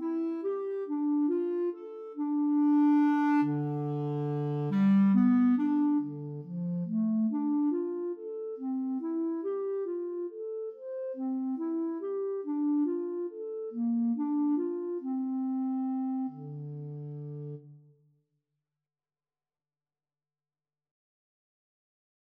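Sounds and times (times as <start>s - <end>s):
flute and clarinet duet: 0.0s - 17.8s.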